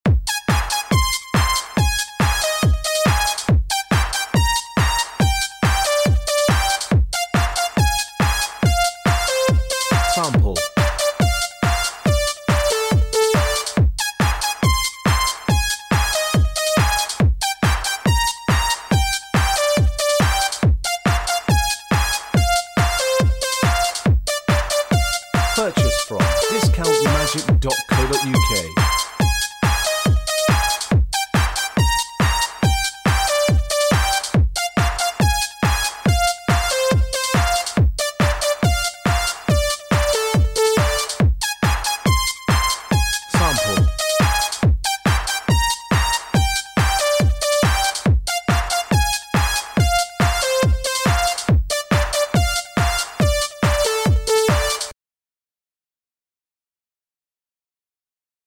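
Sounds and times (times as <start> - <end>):
techno backing track: 0.1 - 54.9.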